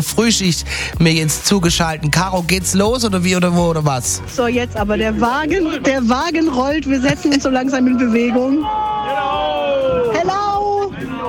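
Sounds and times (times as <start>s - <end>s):
speech: 0.0s - 9.0s
carnival parade crowd cheering and whooping: 7.5s - 11.2s.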